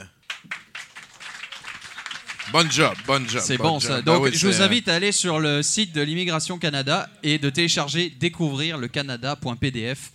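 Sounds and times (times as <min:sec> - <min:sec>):
audience applause: 0:00.3 - 0:04.4
speech: 0:02.5 - 0:10.1.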